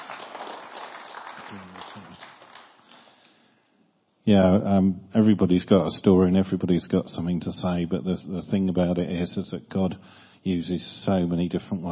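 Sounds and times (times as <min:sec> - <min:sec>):
audience applause: 0:00.0 - 0:03.2
speech: 0:04.3 - 0:11.9.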